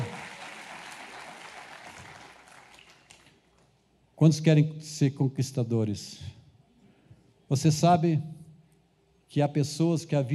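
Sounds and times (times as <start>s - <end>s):
audience applauding: 0.0s - 3.4s
speech: 4.2s - 6.4s, 7.5s - 8.4s, 9.3s - 10.3s.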